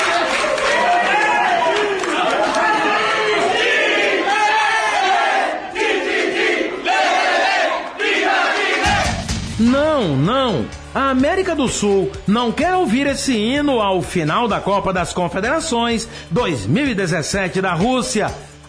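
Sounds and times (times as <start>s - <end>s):
crowd cheering and chanting: 0.0s - 11.0s
speech: 10.0s - 18.6s.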